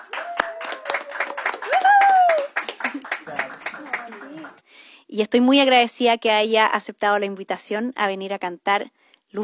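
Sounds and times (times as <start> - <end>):
audience applause: 0.0 - 4.6
speech: 5.2 - 9.4.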